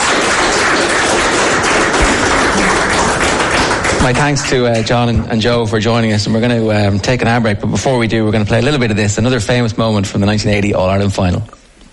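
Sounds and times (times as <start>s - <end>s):
audience applause: 0.0s - 5.7s
speech: 4.0s - 11.6s.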